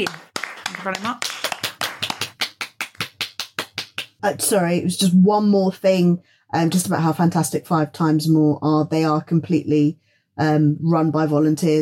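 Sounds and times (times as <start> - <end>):
speech: 0.0 - 1.3, 4.2 - 11.8
hands clapping: 0.0 - 4.2.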